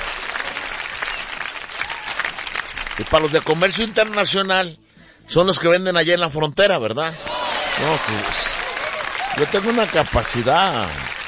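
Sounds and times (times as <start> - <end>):
audience applause at a live Spanish show: 0.0 - 4.3, 7.2 - 11.2
speech: 3.0 - 8.6, 9.3 - 11.2.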